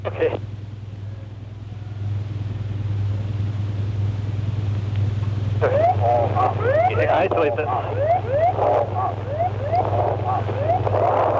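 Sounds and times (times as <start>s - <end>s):
speech: 0.0s - 0.6s, 7.2s - 9.4s
low droning hum: 0.0s - 11.3s
aircraft cockpit alarm rising electronic chirps: 5.7s - 10.9s.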